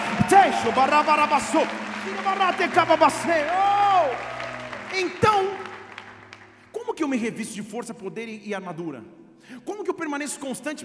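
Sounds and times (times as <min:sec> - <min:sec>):
audience shouting and applauding: 0:00.0 - 0:06.6
speech: 0:00.3 - 0:03.8, 0:05.0 - 0:05.6, 0:07.0 - 0:10.8.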